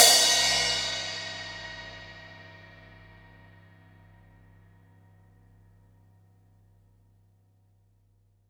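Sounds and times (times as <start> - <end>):
15-inch dark crash cymbal: 0.0 - 3.8.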